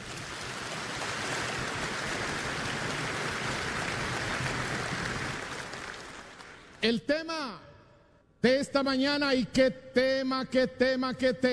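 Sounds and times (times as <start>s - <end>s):
crowd clapping loudly: 0.0s - 6.8s
speech: 6.8s - 7.7s, 8.4s - 11.5s.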